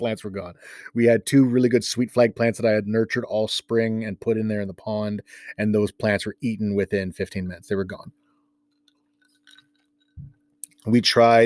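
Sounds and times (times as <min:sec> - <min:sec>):
speech: 0:00.0 - 0:08.2, 0:10.2 - 0:11.4
person chewing a piece of ice: 0:09.2 - 0:09.9.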